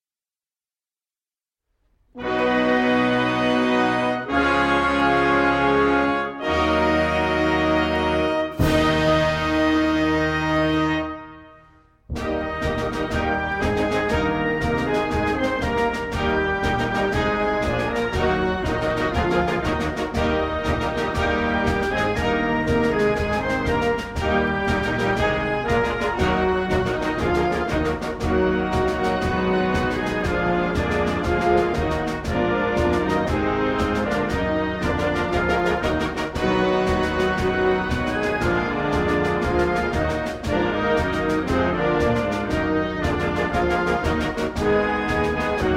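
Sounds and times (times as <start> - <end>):
national anthem: 2.2 - 45.7.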